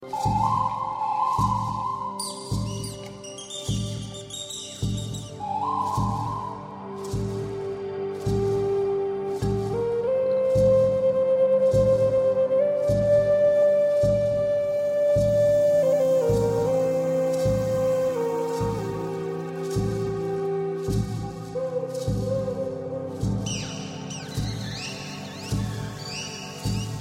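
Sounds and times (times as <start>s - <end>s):
Incan pan pipes: 0.0s - 26.9s.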